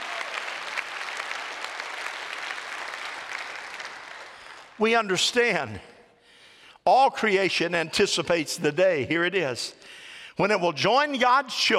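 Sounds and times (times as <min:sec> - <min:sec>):
audience hand clapping: 0:00.0 - 0:04.8
speech: 0:04.8 - 0:05.9, 0:06.9 - 0:11.7.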